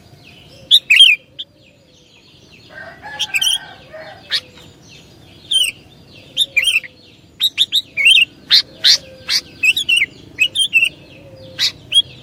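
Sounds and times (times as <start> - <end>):
Sooty-headed bulbul song: 0.0 - 1.5, 4.3 - 12.2.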